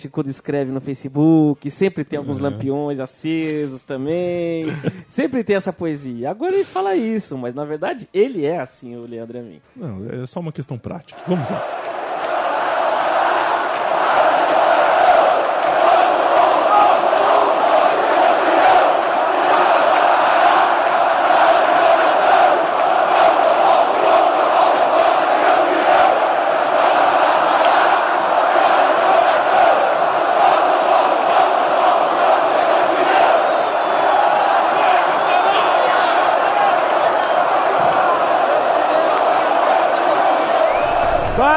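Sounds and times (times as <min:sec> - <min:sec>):
speech: 0:00.0 - 0:11.9
laughter: 0:04.6 - 0:05.1
large crowd of football fans chanting in stadium: 0:11.2 - 0:41.4.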